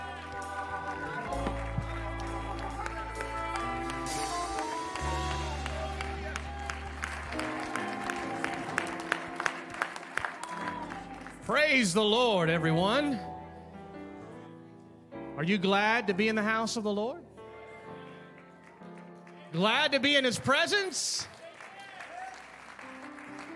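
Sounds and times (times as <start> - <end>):
audience clapping: 0.0 - 12.1, 18.0 - 23.5
speech: 11.5 - 13.3, 15.4 - 17.2, 19.5 - 21.3.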